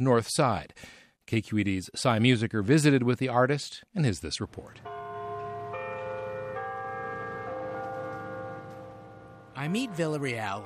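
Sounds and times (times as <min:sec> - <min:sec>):
speech: 0:00.0 - 0:05.0, 0:09.6 - 0:10.6
ferry building clock tower bells ringing: 0:04.7 - 0:10.6.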